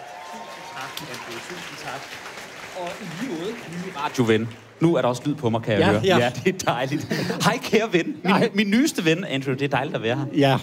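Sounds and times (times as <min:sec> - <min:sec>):
voices and cheers: 0:00.0 - 0:04.6
audience applause: 0:00.0 - 0:05.8
speech: 0:00.8 - 0:10.6.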